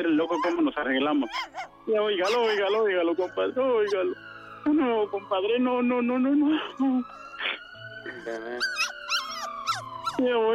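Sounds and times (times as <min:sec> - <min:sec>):
dog whimpering and whining: 0:00.0 - 0:04.2, 0:08.1 - 0:10.5
speech: 0:00.0 - 0:07.6, 0:08.2 - 0:08.9, 0:10.2 - 0:10.5.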